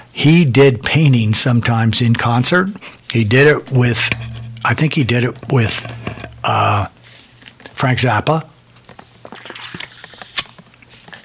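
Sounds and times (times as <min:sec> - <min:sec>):
speech: 0:00.2 - 0:06.9, 0:07.8 - 0:08.5
drink bottle banging into microphone: 0:03.1 - 0:07.0.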